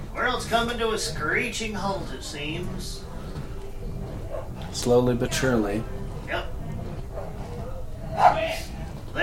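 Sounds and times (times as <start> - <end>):
speech: 0.2 - 3.1, 4.7 - 6.5
dogs barking: 3.2 - 4.9, 6.1 - 9.1.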